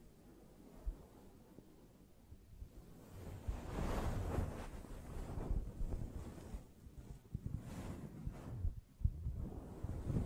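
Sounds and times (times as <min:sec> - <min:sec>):
soft brushing strokes: 0:02.7 - 0:10.2.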